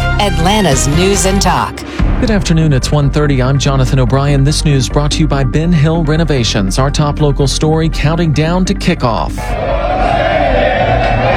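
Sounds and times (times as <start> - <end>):
speech: 0.2 - 10.0
football fans cheering downtown: 9.4 - 11.3.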